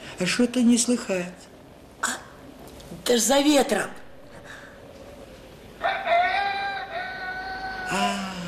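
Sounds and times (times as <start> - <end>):
speech: 0.2 - 1.5, 3.1 - 4.0
man imitating a rooster crowing: 5.8 - 8.4.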